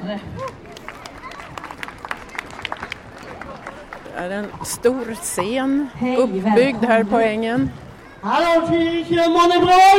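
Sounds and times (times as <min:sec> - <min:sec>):
soft murmur of voices: 0:00.0 - 0:09.9
speech: 0:00.1 - 0:00.7, 0:04.2 - 0:09.9
crowd applause: 0:00.4 - 0:05.1.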